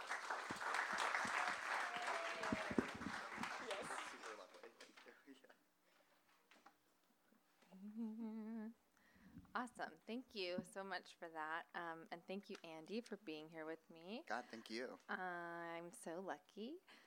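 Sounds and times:
audience applause welcoming two speakers to a lecture at USC Roski School of Art and Design: 0.0 - 4.7
speech: 9.8 - 17.0.

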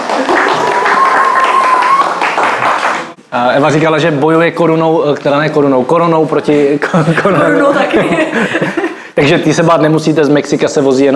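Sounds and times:
short audience applause: 0.0 - 3.2
speech: 3.3 - 11.1
laughter: 6.8 - 9.1.

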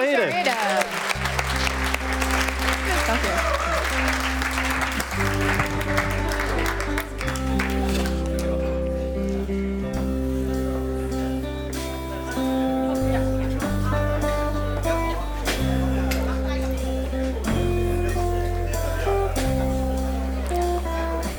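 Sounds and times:
audience applause: 0.0 - 9.5
laughter: 0.0 - 21.3
speech: 0.1 - 1.4
sustained low musical chords: 1.2 - 21.3.

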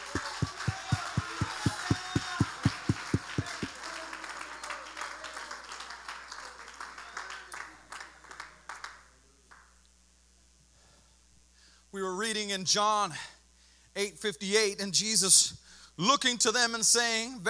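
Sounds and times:
audience clapping hands: 0.0 - 9.6
speech: 12.5 - 13.3, 14.0 - 17.4.

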